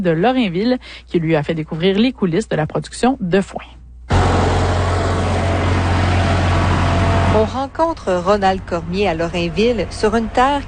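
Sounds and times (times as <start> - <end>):
speech: 0.0 - 3.8, 7.3 - 10.6
red self-propelled hay mower from the 1980s engine running: 4.1 - 7.6.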